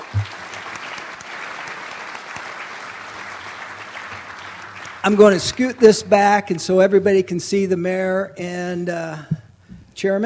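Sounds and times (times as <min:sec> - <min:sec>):
audience applause: 0:00.0 - 0:06.0
speech: 0:05.0 - 0:09.4, 0:10.0 - 0:10.2.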